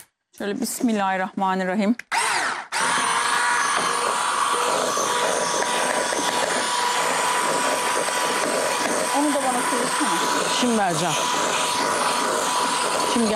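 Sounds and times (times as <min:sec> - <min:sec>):
speech: 0:00.4 - 0:02.1, 0:09.8 - 0:12.1, 0:12.9 - 0:13.3
hand mixer whipping cream and cheese: 0:02.1 - 0:13.3.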